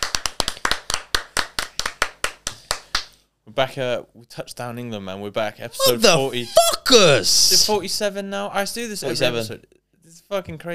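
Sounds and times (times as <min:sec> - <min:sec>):
applause in the studio: 0:00.0 - 0:03.2
speech: 0:03.6 - 0:10.7.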